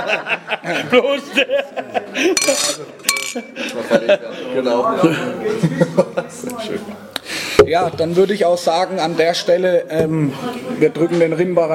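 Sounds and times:
laughter: 0.0s - 6.8s
speech: 0.0s - 11.7s
ceramic bowl clinking at a table: 2.4s - 3.5s.

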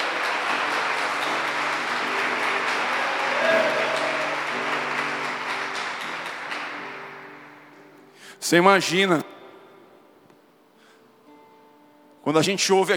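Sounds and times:
audience applause: 0.0s - 7.8s
speech: 8.5s - 9.2s, 12.3s - 12.9s.

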